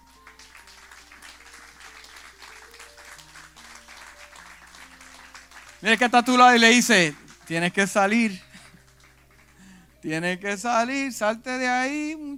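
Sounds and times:
audience applause: 0:00.0 - 0:09.9
speech: 0:05.8 - 0:08.5, 0:10.0 - 0:12.3.

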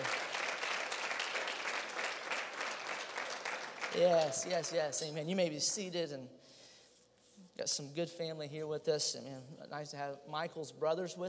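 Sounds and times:
crowd applauding: 0:00.0 - 0:05.1
speech: 0:03.9 - 0:06.5, 0:07.6 - 0:11.2.

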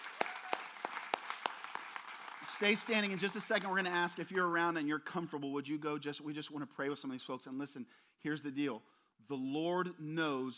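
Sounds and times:
audience clapping: 0:00.0 - 0:04.2
speech: 0:02.5 - 0:10.5.

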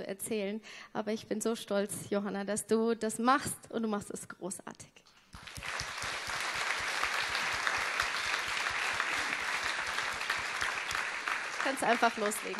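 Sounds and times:
speech: 0:00.0 - 0:05.7, 0:11.7 - 0:12.5
audience applause: 0:05.4 - 0:12.5.

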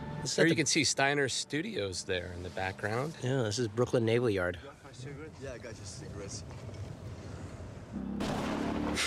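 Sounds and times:
speech: 0:00.2 - 0:06.8
thunder crack and rumble from a lightning strike: 0:06.0 - 0:09.0.

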